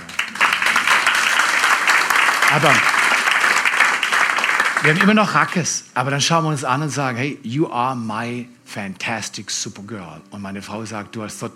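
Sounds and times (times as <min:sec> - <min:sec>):
crowd applause: 0:00.0 - 0:05.6
speech: 0:02.5 - 0:03.0, 0:04.8 - 0:11.5.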